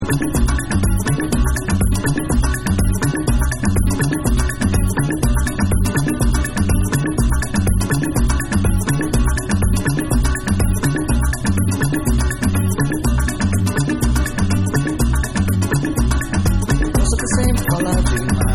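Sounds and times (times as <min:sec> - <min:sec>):
samba music: 0:00.0 - 0:18.5.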